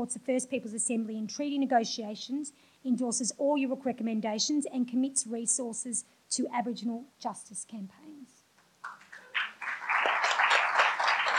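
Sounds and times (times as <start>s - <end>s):
speech: 0.0s - 8.1s
audience clapping after a motion at a union meeting: 8.8s - 11.3s.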